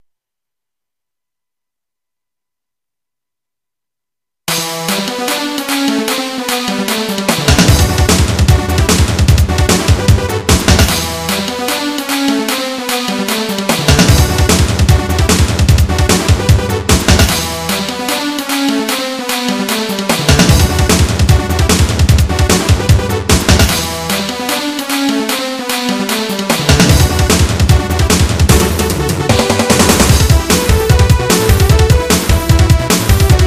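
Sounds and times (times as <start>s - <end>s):
rock music: 4.5s - 33.4s.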